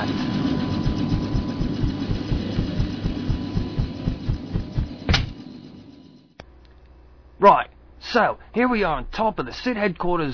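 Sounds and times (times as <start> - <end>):
transport helicopter engine: 0.0 - 6.1
speech: 7.4 - 10.3.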